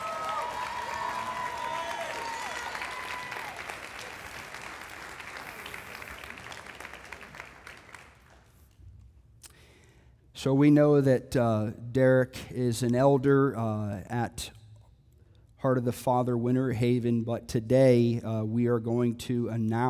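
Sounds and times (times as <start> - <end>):
audience applause: 0.0 - 8.4
speech: 10.4 - 14.6, 15.6 - 19.8.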